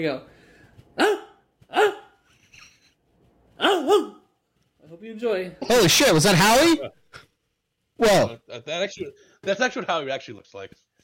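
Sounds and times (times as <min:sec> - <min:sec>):
speech: 0:00.0 - 0:00.3, 0:01.0 - 0:01.2, 0:04.9 - 0:07.3, 0:08.0 - 0:10.8
person vocally imitating a dog barking: 0:01.0 - 0:02.2, 0:03.6 - 0:04.2.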